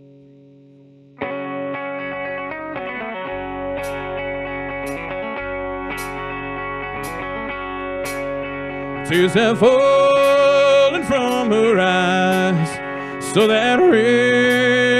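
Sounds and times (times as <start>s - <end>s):
bluegrassy country rock song: 1.2s - 14.9s
speech: 9.1s - 10.1s, 11.0s - 14.9s.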